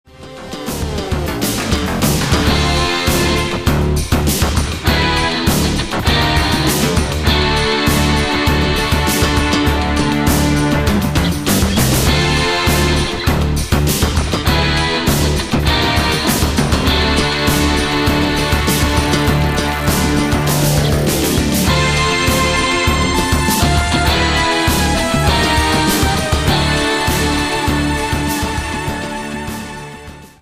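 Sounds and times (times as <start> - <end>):
march music: 0.2 - 30.4.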